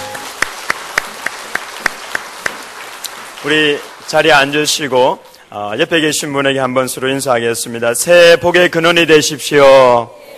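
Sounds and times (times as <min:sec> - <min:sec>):
applause: 0:00.0 - 0:05.2
speech: 0:03.4 - 0:10.3.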